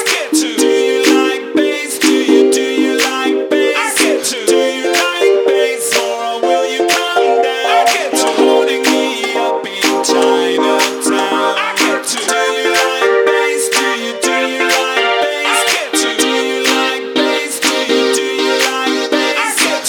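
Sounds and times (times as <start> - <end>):
bass music: 0.1 - 19.8.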